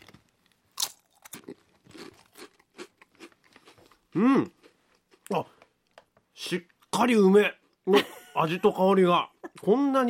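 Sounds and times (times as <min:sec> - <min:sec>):
eating Calbee potato chips in ume-katsuo flavour: 0:00.0 - 0:05.3
speech: 0:04.2 - 0:04.6, 0:06.5 - 0:10.0.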